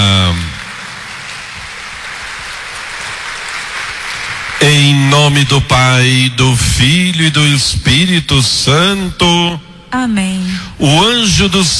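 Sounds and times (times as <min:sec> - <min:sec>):
audience applause: 0:00.0 - 0:05.8
speech: 0:04.6 - 0:11.7.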